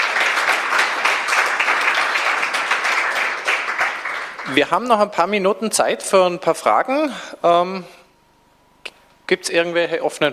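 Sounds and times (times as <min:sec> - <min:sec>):
audience applause: 0:00.0 - 0:04.7
speech: 0:04.6 - 0:08.0, 0:09.3 - 0:10.3.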